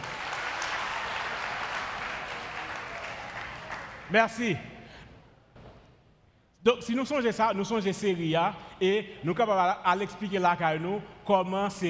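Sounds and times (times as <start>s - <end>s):
audience applause: 0.0s - 4.1s
speech: 4.1s - 4.7s, 6.6s - 11.8s.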